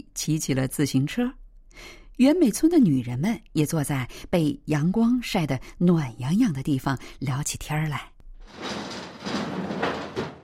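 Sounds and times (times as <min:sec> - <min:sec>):
speech: 0:00.2 - 0:09.4
door opening: 0:08.4 - 0:10.4.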